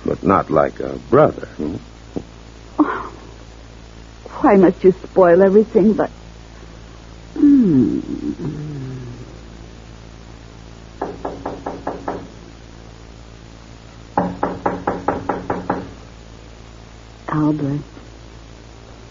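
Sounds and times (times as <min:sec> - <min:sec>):
speech: 0:00.2 - 0:02.0, 0:04.4 - 0:06.2, 0:07.4 - 0:08.9, 0:17.4 - 0:17.9
wavering vocal sound: 0:07.4 - 0:09.4
knocking on a door: 0:11.0 - 0:12.4, 0:14.2 - 0:16.0.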